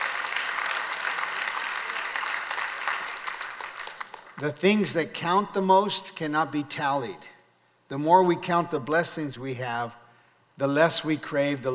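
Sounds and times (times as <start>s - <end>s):
audience clapping: 0.0s - 4.5s
speech: 4.4s - 7.3s, 7.9s - 10.0s, 10.6s - 11.7s.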